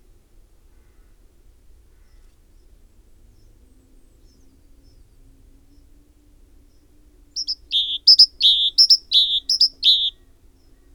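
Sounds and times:
great tit singing: 0:07.4 - 0:10.1.

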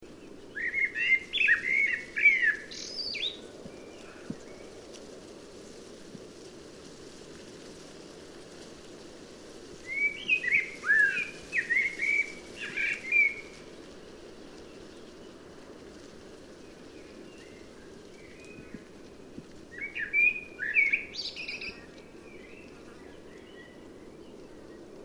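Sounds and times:
common blackbird singing: 0:00.6 - 0:04.3, 0:09.9 - 0:13.5, 0:19.7 - 0:23.8.

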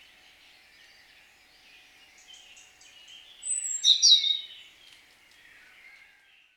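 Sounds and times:
European robin singing: 0:02.2 - 0:04.7.

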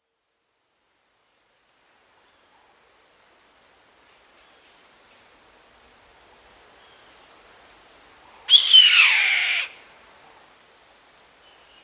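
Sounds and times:
bird rasping screech: 0:08.5 - 0:09.7.

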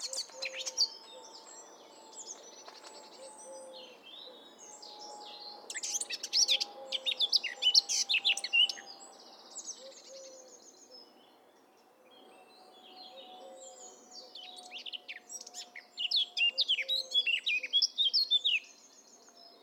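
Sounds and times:
Eurasian blackcap Sylvia atricapilla singing: 0:05.7 - 0:08.9, 0:14.4 - 0:18.7.

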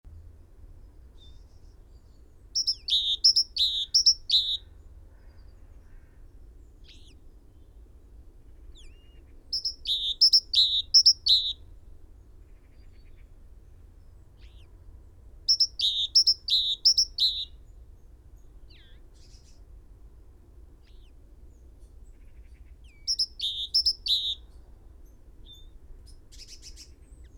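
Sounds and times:
great tit song: 0:02.6 - 0:04.6, 0:09.6 - 0:11.5, 0:15.5 - 0:17.5.

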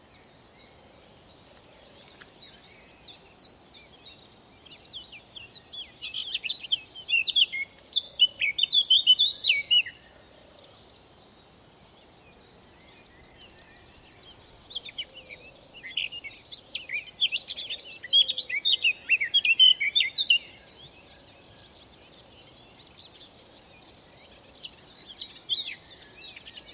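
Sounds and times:
Eurasian blackcap singing: 0:02.1 - 0:10.0, 0:13.0 - 0:21.0, 0:24.2 - 0:26.7.

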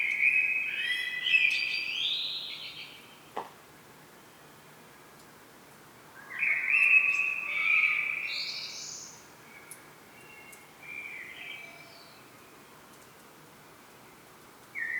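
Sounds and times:
common blackbird singing: 0:00.0 - 0:03.0, 0:06.2 - 0:12.2, 0:14.8 - 0:14.9
faint high ticks: 0:12.9 - 0:13.3.

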